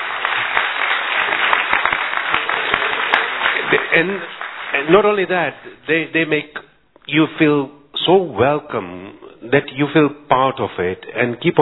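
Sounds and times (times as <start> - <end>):
audience applause: 0.0 - 5.7
speech: 3.7 - 11.6.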